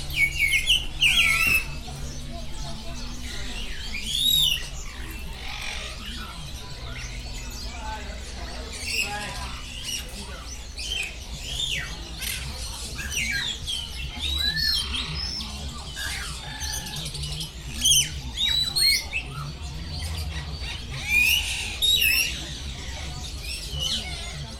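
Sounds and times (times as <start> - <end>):
birds chirping and twittering: 0.0 - 24.5.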